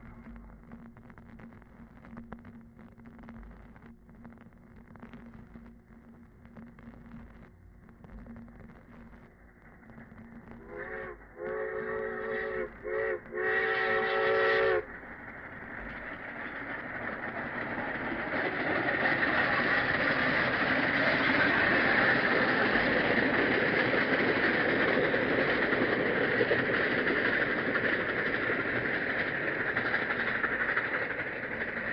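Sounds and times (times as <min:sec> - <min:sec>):
steam locomotive: 0:09.6 - 0:31.9
train wheels on steel rails switching: 0:09.7 - 0:31.9.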